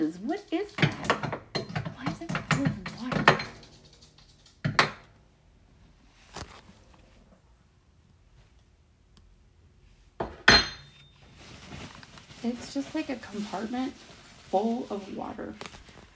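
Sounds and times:
speech: 0:00.0 - 0:01.0, 0:12.8 - 0:15.8
dishes and cutlery clattering: 0:00.5 - 0:05.0, 0:10.2 - 0:11.0.

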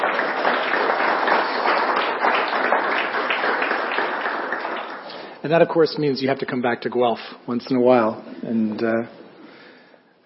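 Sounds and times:
audience clapping: 0:00.0 - 0:05.4
speech: 0:05.4 - 0:09.2.

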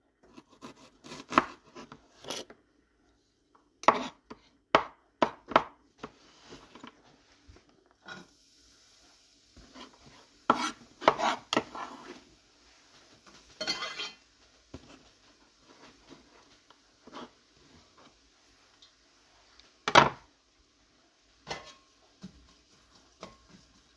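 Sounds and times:
knife chopping vegetables: 0:00.2 - 0:02.5, 0:03.8 - 0:05.8, 0:10.5 - 0:12.2
faint steady hiss: 0:06.1 - 0:23.9.

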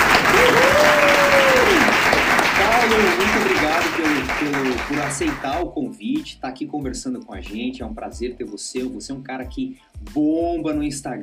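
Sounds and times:
applause welcoming a vocal coach at an interview: 0:00.0 - 0:05.6
speech: 0:05.0 - 0:11.2.

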